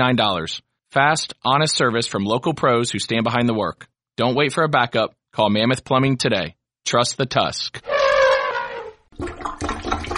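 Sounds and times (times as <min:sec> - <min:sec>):
speech: 0:00.0 - 0:08.0, 0:09.2 - 0:09.8
plunger squelching at a clogged drain: 0:07.9 - 0:10.1.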